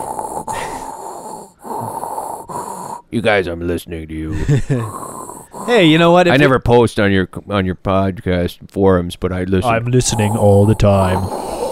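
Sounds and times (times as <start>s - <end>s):
voice imitating Darth Vader's respirator breathing through a karaoke microphone: 0.0s - 3.4s, 4.4s - 6.4s, 9.6s - 11.7s
speech: 3.1s - 11.5s.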